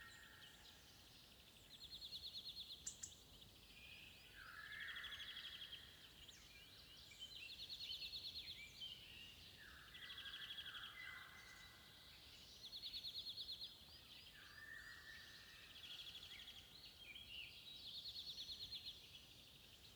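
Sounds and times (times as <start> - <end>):
golden oriole birds: 0.0 - 19.9.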